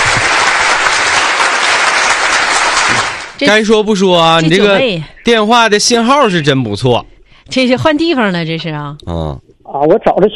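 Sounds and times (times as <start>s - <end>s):
audience applause: 0.0s - 3.4s
speech: 3.4s - 10.3s.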